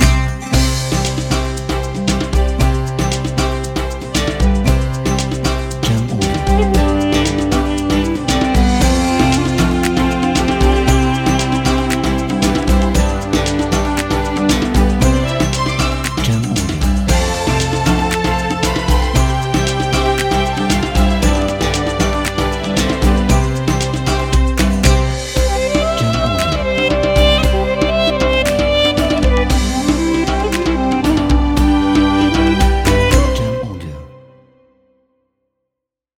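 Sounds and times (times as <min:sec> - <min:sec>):
Middle Eastern Arabic music: 0:00.0 - 0:34.9.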